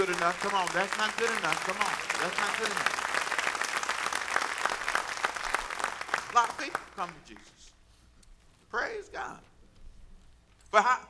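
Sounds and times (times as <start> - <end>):
speech: 0.0 - 3.0, 6.3 - 7.8, 8.7 - 9.5, 10.7 - 11.0
crowd clapping: 0.0 - 7.7.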